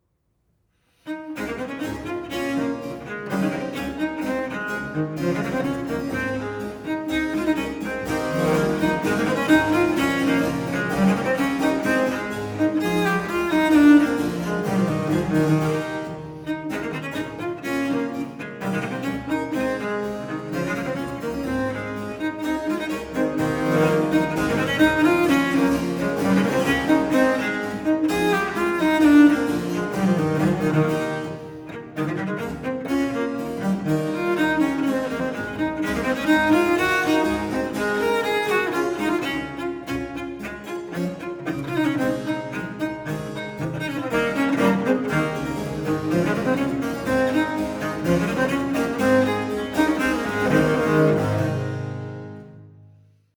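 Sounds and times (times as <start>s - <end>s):
viola da gamba sonata in A major, vivace: 1.3s - 52.6s.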